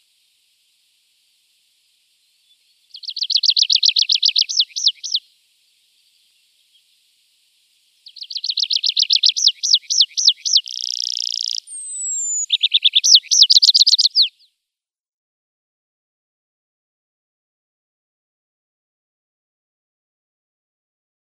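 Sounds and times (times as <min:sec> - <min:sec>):
tree pipit singing looping notes, trills, rattle and downward slurs: 0:02.6 - 0:05.2, 0:08.0 - 0:14.4.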